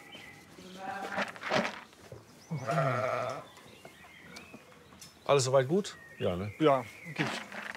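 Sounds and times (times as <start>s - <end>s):
sheep bleating: 2.5s - 3.4s
speech: 2.6s - 3.2s, 5.3s - 7.5s.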